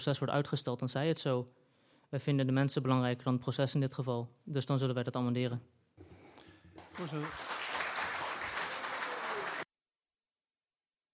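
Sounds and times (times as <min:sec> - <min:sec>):
speech: 0:00.0 - 0:06.1, 0:07.0 - 0:07.5
audience applause in a council meeting: 0:06.7 - 0:09.7.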